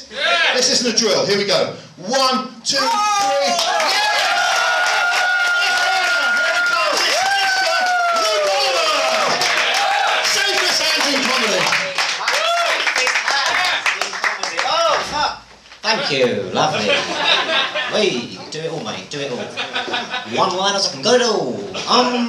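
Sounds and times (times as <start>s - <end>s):
speech: 0.1s - 4.1s, 15.9s - 22.2s
crowd cheering and whooping: 2.9s - 10.9s, 12.2s - 13.9s
crowd clapping: 3.1s - 15.1s
laughter: 13.0s - 14.1s, 15.8s - 18.2s, 19.2s - 20.6s.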